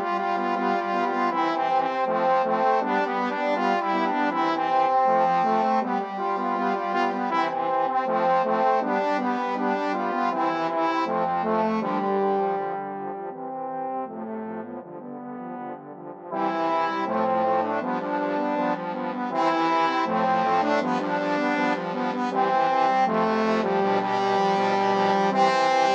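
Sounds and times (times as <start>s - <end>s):
trombone quartet playing: 0.0s - 25.9s.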